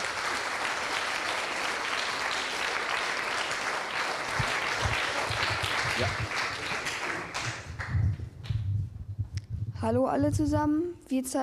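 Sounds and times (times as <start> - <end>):
audience applause: 0.0 - 8.1
low thumps: 7.4 - 10.8
speech: 9.8 - 11.4.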